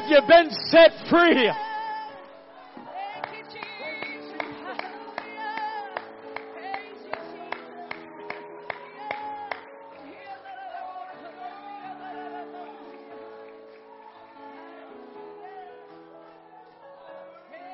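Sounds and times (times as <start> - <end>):
speech: 0.1 - 1.6
audience clapping hands in rhythm: 3.1 - 10.5, 12.0 - 16.8.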